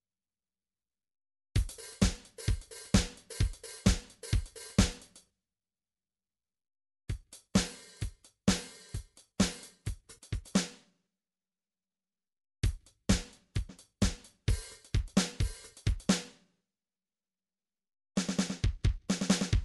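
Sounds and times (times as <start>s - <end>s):
midi drums: 1.6s - 5.1s, 7.1s - 10.7s, 12.6s - 16.2s, 18.2s - 19.6s.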